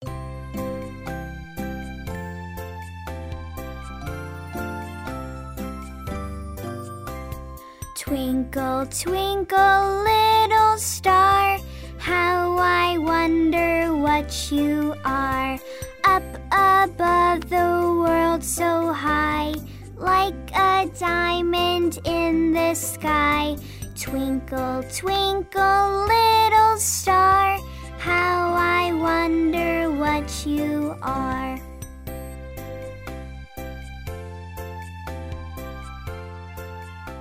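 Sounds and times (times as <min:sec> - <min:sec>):
girl singing in English: 0:07.9 - 0:31.7.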